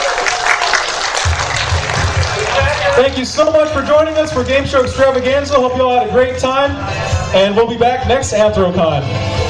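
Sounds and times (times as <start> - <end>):
game show audience applauding at a fan convention: 0.0 - 5.6
speech: 3.0 - 9.4.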